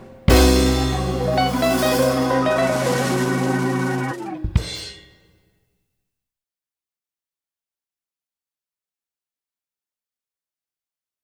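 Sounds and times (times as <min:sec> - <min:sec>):
blues music: 0:00.0 - 0:05.1.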